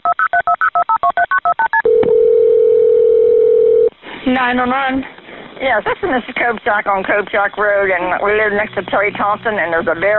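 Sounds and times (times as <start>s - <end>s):
steady mid-pitched telephone tone: 0.0s - 3.9s
telephone keypad dialing beeps: 0.0s - 3.9s
speech: 4.4s - 10.1s.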